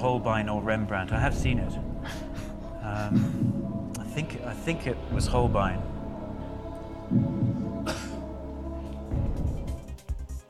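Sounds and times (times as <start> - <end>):
speech: 0.0 - 2.2, 2.9 - 5.9, 7.1 - 7.5
low hum: 0.0 - 9.9
cough: 7.8 - 8.2.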